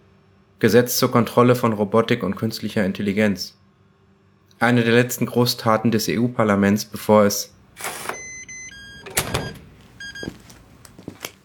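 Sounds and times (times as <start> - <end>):
speech: 0.6 - 3.6, 4.6 - 8.1
electronic door lock whirring: 7.6 - 11.2
electronic door lock clicking open: 8.9 - 10.0.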